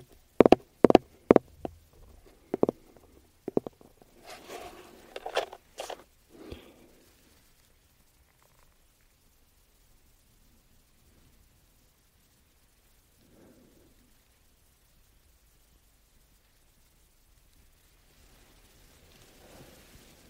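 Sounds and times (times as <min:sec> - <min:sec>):
gentle hiss: 0:00.0 - 0:20.2
faint soft rub: 0:00.4 - 0:07.4, 0:18.0 - 0:20.2
aroma oil bottle and case tapping: 0:02.5 - 0:04.1.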